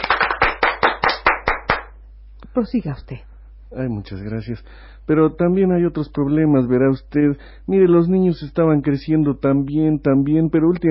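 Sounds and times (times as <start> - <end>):
audience applause: 0.0 - 1.8
speech: 2.6 - 10.9.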